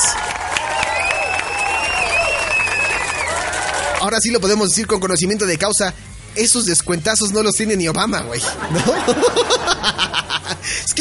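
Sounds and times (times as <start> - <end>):
applause: 0.0 - 4.5
speech: 4.0 - 10.9
laughter: 8.4 - 10.9.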